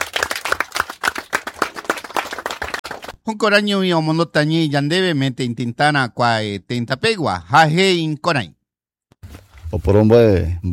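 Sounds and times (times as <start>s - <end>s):
audience applause: 0.0s - 3.2s
speech: 3.3s - 8.6s, 9.7s - 10.7s.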